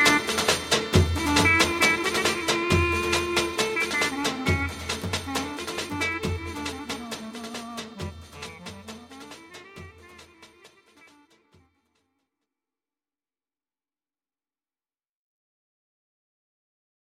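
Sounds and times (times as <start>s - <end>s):
ciftetelli belly dance music: 0.0s - 11.4s.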